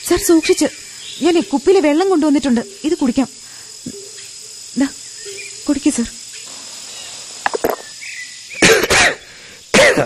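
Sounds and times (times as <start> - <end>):
speech: 0.1 - 4.0, 4.8 - 5.0, 5.6 - 6.2
ailing man coughing: 8.6 - 10.0.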